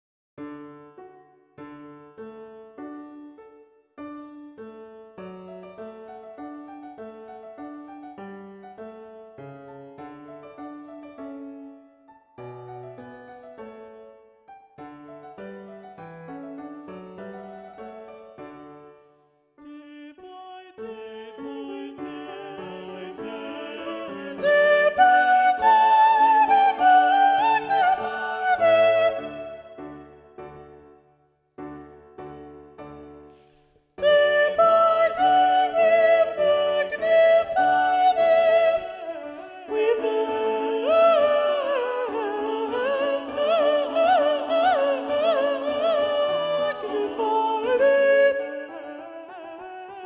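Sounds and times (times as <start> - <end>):
soprano singing a hymn: 19.6 - 30.1, 34.0 - 50.0.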